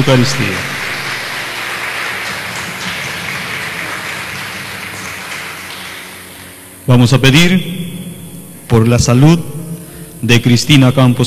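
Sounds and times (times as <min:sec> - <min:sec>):
speech: 0:00.0 - 0:00.8, 0:06.9 - 0:07.9, 0:08.7 - 0:09.5, 0:10.2 - 0:11.2
audience applause: 0:00.0 - 0:06.6.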